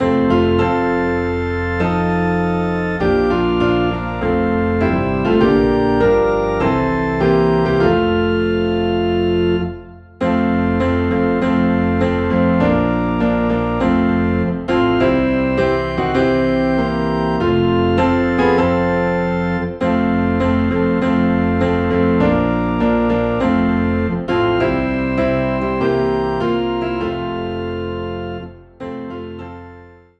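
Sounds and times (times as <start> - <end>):
low organ in F: 0.0 - 30.1
piano in F: 0.0 - 30.1.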